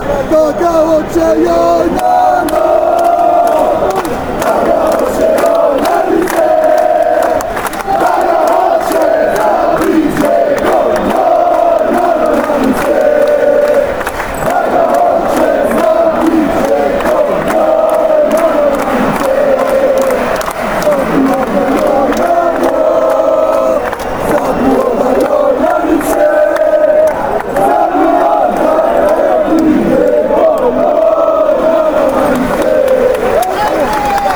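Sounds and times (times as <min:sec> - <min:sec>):
chant: 0:00.0 - 0:34.3.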